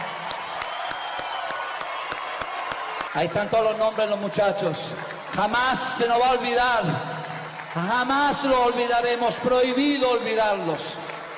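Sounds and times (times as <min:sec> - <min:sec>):
audience applause: 0:00.0 - 0:11.3
speech: 0:03.1 - 0:07.1, 0:07.7 - 0:11.0.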